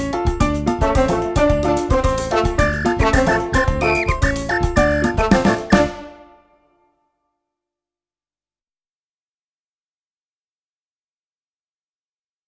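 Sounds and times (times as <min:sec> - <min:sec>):
samba music: 0:00.0 - 0:06.5.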